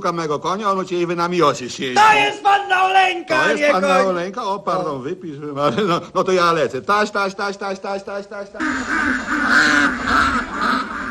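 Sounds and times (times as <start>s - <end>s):
speech: 0.0s - 10.3s
ducks quacking: 8.6s - 11.0s.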